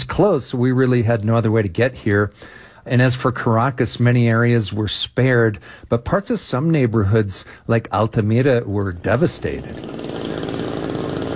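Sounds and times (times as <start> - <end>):
speech: 0.2 - 10.3
rescue workers' chainsaw cutting a tunnel through collapsed high-rise rubble after an earthquake: 9.0 - 11.3.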